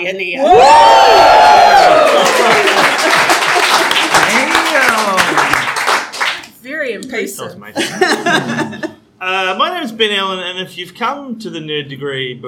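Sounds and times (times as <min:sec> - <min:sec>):
speech: 0:00.0 - 0:02.7, 0:07.0 - 0:08.9, 0:09.6 - 0:12.4
audience cheering and applause: 0:00.4 - 0:06.4
laughter: 0:02.2 - 0:04.5, 0:07.8 - 0:09.0.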